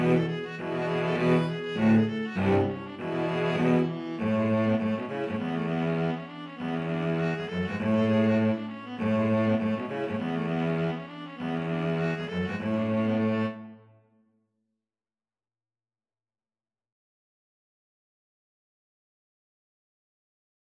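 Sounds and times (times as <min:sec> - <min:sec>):
viola in a viola cello duet: 0:00.0 - 0:13.8
cello in a viola cello duet: 0:00.0 - 0:14.0.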